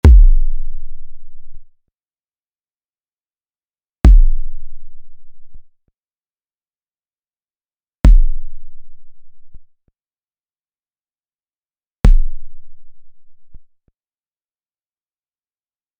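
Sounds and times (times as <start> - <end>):
kick drum: 0.0 - 0.6, 4.1 - 4.5, 8.1 - 8.5, 12.1 - 12.5.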